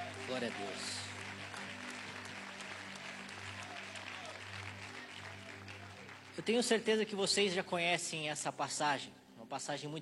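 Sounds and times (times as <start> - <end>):
audience clapping: 0.0 - 7.6
speech: 0.3 - 1.1, 6.4 - 10.0.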